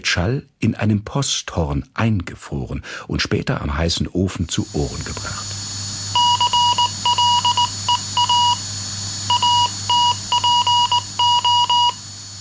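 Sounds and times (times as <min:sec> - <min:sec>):
speech: 0:00.0 - 0:05.5
telegraph Morse code electronic beeps: 0:06.2 - 0:08.6, 0:09.3 - 0:12.0.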